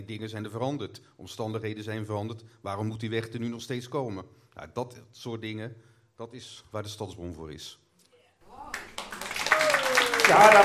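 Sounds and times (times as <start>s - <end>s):
speech: 0.0s - 7.8s, 10.3s - 10.6s
audience applause: 8.7s - 10.6s.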